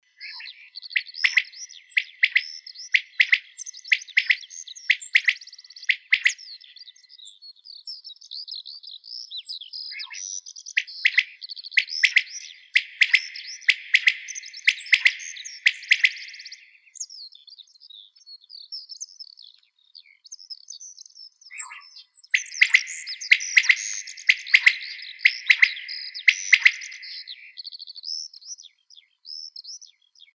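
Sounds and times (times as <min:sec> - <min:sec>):
Coturnix coturnix quail calling: 0:00.2 - 0:06.4, 0:10.8 - 0:16.7, 0:21.5 - 0:27.6.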